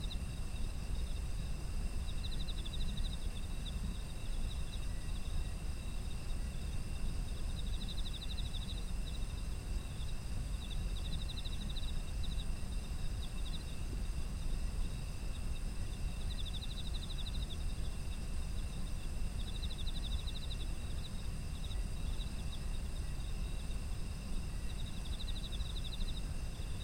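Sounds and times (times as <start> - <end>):
insect pulsed trills: 0.0 - 26.8.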